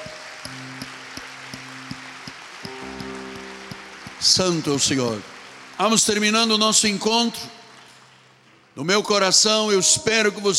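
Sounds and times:
applause: 0.0s - 9.2s
speech: 4.2s - 7.6s, 8.8s - 10.5s.

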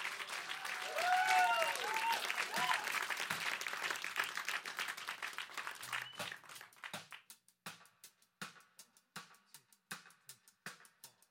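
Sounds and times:
studio audience applause at a live lunchtime session: 0.0s - 7.1s.

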